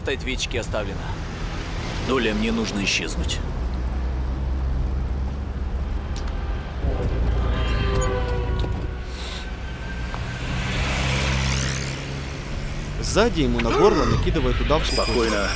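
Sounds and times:
speech: 0.0 - 1.2, 2.1 - 3.6, 13.0 - 15.5
car driving with constant low engine rumble: 0.0 - 14.9
road noise: 0.0 - 15.5
brief high-pitched whines and hissing swells: 5.8 - 15.5.

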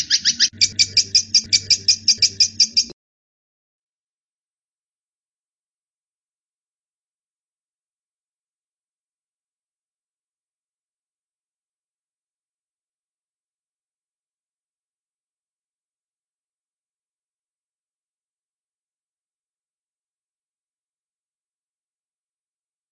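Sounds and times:
long-tailed shrike song with buzzy chatter: 0.0 - 2.9.

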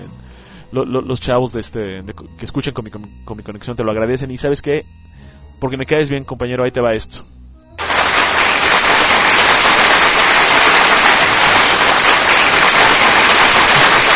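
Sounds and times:
speech: 0.7 - 7.4
large crowd applauding: 7.8 - 14.1.

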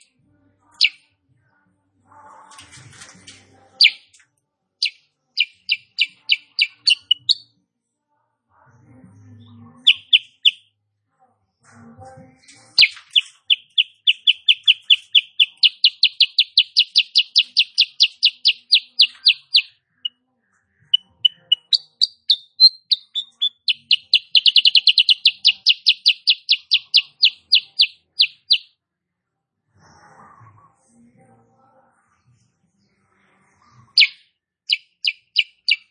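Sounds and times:
sooty-headed bulbul song: 0.7 - 1.0, 3.8 - 4.2, 4.8 - 7.5, 9.3 - 10.7, 12.7 - 20.2, 20.8 - 28.7, 33.9 - 35.8.

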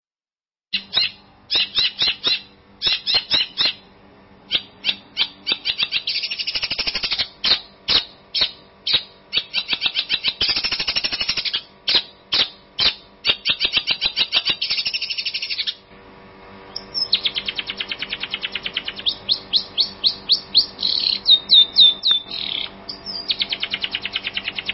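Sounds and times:
long-tailed shrike singing: 0.7 - 15.9, 16.7 - 24.7.

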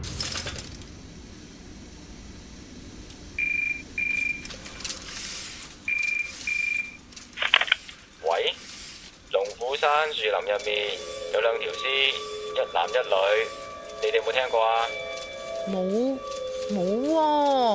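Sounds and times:
telephone at a newspaper office ringing with electronic trills: 3.4 - 4.5, 5.9 - 7.0, 9.5 - 17.7
speech: 10.1 - 15.0, 15.6 - 17.7.

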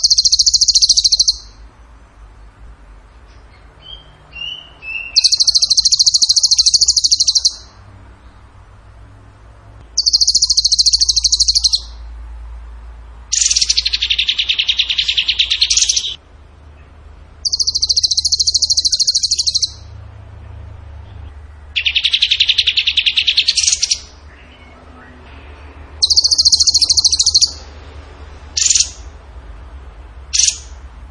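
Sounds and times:
bird singing a fast high trill: 0.0 - 1.6, 3.3 - 8.3, 9.9 - 12.1, 13.3 - 16.2, 17.4 - 19.9, 21.8 - 25.1, 26.0 - 27.7, 28.5 - 29.2, 30.3 - 30.8.

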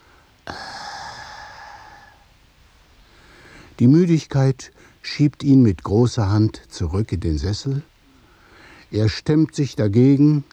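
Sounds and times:
man drinking tea exhaling steam and groaning: 0.4 - 2.1
speech: 3.8 - 7.9, 8.9 - 10.5.

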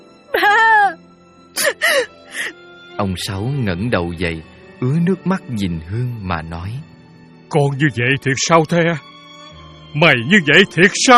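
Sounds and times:
woman kneeling at a wooden bench wailing and sobbing: 0.4 - 1.0, 1.6 - 2.5
speech: 3.0 - 6.9, 7.5 - 9.1, 9.9 - 11.1.

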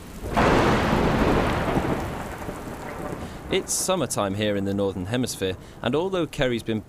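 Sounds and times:
deep rumble of thunder: 0.0 - 6.4
dense hiss of heavy rain falling: 0.0 - 6.8
speech: 3.5 - 6.8.

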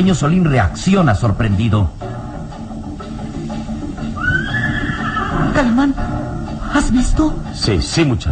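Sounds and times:
speech: 0.0 - 2.2, 5.6 - 6.1, 6.8 - 8.3
horses neighing: 3.3 - 6.8.

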